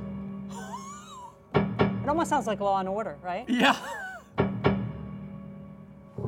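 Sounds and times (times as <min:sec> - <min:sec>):
piano string dampened by hand, hammer struck: 0:01.5 - 0:03.4, 0:04.4 - 0:06.2
speech: 0:02.1 - 0:04.0.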